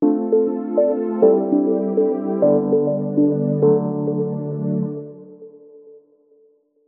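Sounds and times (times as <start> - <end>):
ringtone: 0.0 - 4.3.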